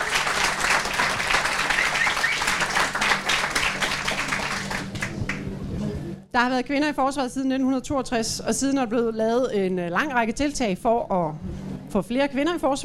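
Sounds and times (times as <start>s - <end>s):
audience applause for panelists at a debate about women in the armed forces: 0.0s - 5.4s
speech: 6.3s - 12.8s.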